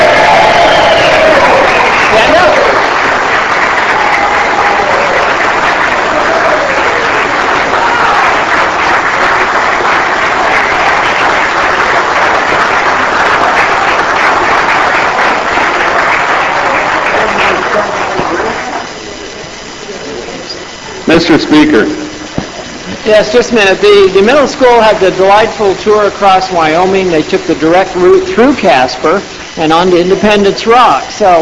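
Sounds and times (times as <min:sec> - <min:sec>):
applause in a legislative chamber: 0:00.0 - 0:23.0
speech: 0:21.2 - 0:22.0, 0:23.1 - 0:31.4.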